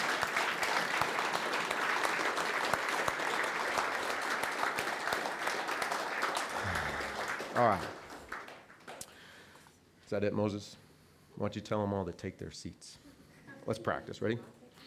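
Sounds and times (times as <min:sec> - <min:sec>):
audience applause: 0:00.0 - 0:09.0
speech: 0:07.6 - 0:08.0, 0:10.1 - 0:10.8, 0:11.4 - 0:13.0, 0:13.6 - 0:14.6.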